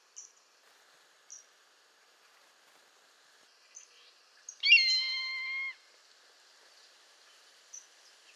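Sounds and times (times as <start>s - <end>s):
Buteogallus meridionalis savanna hawk call: 4.6s - 5.8s.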